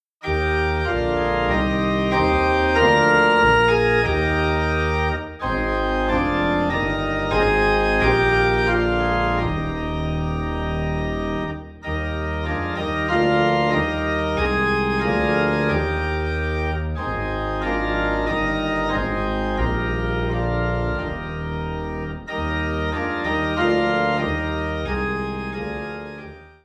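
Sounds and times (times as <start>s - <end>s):
low organ in E flat: 0.2s - 26.6s.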